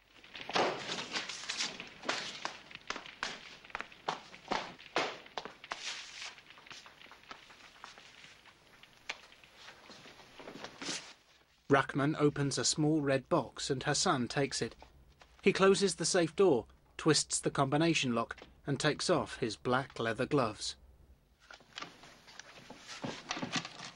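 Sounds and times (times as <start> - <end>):
feet stamping on burning papers: 0.0 - 11.5, 21.6 - 23.9
speech: 11.7 - 20.8.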